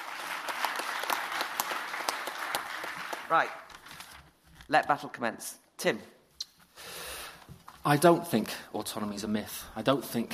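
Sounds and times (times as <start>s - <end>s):
audience applause welcoming a speaker to a debate: 0.0s - 3.7s
speech: 3.3s - 3.6s, 4.7s - 6.2s, 7.8s - 10.3s.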